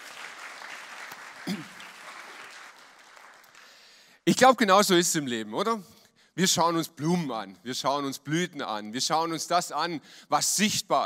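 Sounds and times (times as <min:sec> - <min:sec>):
audience applause: 0:00.0 - 0:03.9
speech: 0:01.5 - 0:01.7, 0:04.2 - 0:11.0.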